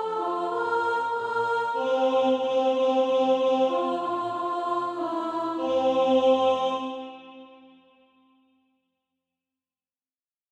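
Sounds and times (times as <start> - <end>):
alto voice singing practice music: 0.0 - 7.8.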